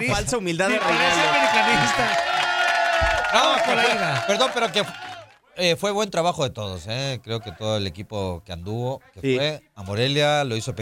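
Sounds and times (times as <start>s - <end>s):
speech: 0.0s - 2.4s, 3.0s - 5.0s, 5.6s - 10.8s
clapping in the studio: 0.8s - 5.4s.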